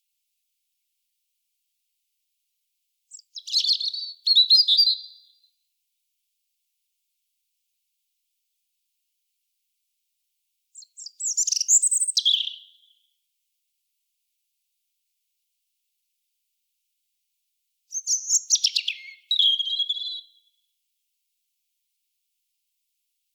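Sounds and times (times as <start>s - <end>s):
European robin singing: 3.1s - 5.4s, 10.8s - 13.1s, 17.9s - 20.5s.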